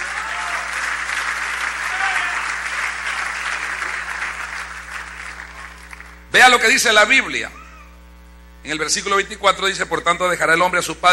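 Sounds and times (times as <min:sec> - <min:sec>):
audience applause: 0:00.0 - 0:06.2
speech: 0:06.4 - 0:07.6, 0:08.6 - 0:11.1.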